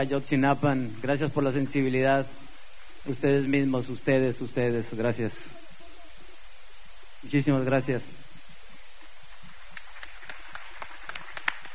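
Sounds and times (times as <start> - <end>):
speech: 0.0 - 2.4, 3.0 - 5.6, 7.2 - 8.2
audience applause: 9.5 - 11.7.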